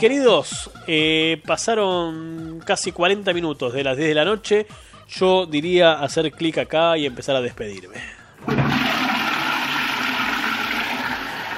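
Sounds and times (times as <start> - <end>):
speech: 0.0 - 8.6
toilet flushing: 8.4 - 11.5.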